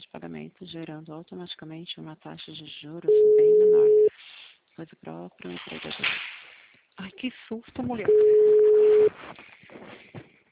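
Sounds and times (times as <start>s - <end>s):
speech: 0.2s - 4.2s, 4.8s - 6.3s, 7.0s - 9.9s
crackly phone line noise: 3.1s - 4.1s, 8.0s - 9.5s
telephone line beep: 3.1s - 4.1s, 8.1s - 9.1s.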